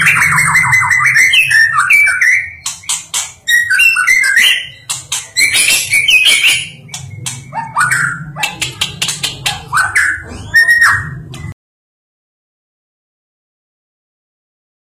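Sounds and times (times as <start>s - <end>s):
bird chirps and trills: 0.0s - 11.6s.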